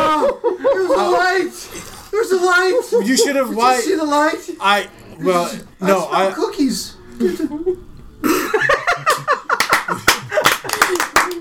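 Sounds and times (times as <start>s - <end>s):
voices and laughter: 0.0s - 6.0s, 6.6s - 11.4s
low murmuring: 0.7s - 8.6s
speech: 2.4s - 8.7s
small group clapping: 9.2s - 11.4s.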